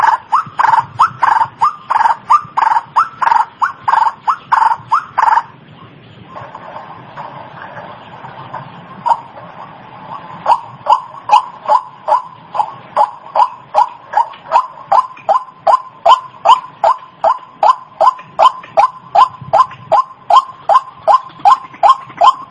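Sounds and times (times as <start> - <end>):
white-breasted waterhen giving harsh repeated chattering notes: 0.0 - 5.6, 10.1 - 22.4.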